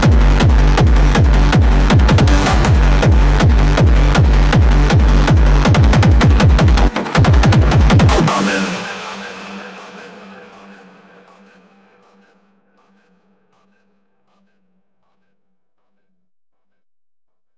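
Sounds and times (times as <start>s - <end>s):
gabber phonk beats: 0.0s - 11.4s.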